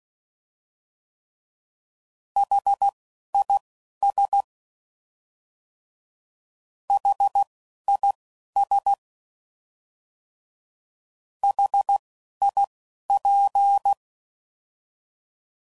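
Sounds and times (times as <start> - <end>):
Morse code CW code groups at 10 WPM: 2.4 - 4.5, 6.9 - 9.0, 11.4 - 14.0.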